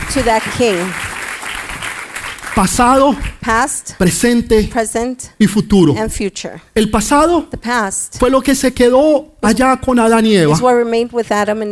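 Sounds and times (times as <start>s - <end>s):
audience applause: 0.0s - 3.4s
speech: 0.1s - 1.0s, 2.6s - 11.7s.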